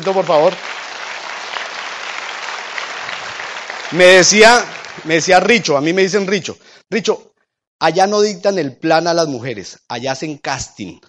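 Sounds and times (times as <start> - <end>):
speech: 0.0 - 0.8, 3.9 - 11.0
audience applause: 0.0 - 6.0.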